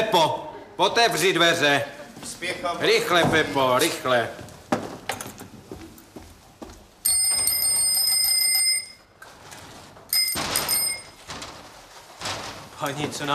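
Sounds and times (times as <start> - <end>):
speech: 0.1 - 4.4, 12.8 - 13.3
bicycle bells being rung in testing: 7.0 - 9.1, 10.1 - 11.2.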